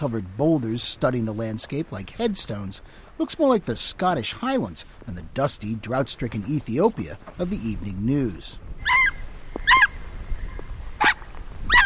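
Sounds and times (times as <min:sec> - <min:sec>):
speech: 0:00.0 - 0:09.0
Ethiopian wolf yelping: 0:08.8 - 0:10.0, 0:11.0 - 0:11.8.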